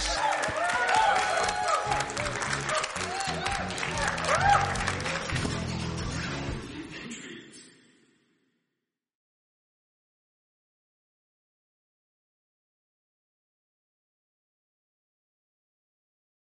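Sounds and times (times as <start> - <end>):
cheers and voices: 0.0 - 5.4
audience applause: 0.0 - 6.0.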